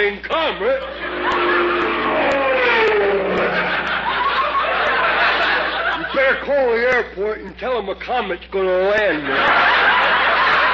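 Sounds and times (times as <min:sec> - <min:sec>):
speech: 0:00.0 - 0:01.8, 0:06.2 - 0:09.9
airplane flying overhead: 0:00.8 - 0:06.0
laughter: 0:02.8 - 0:06.4, 0:09.2 - 0:10.7.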